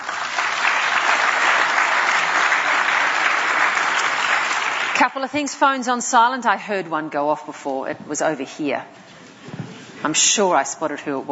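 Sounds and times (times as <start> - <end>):
audience applause welcoming speakers: 0.0 - 5.0
speech: 5.0 - 9.0, 10.0 - 11.3.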